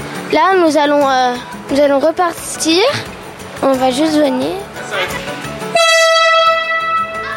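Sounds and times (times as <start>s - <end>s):
speech: 0.3s - 5.4s
two-tone train whistle: 5.8s - 7.2s.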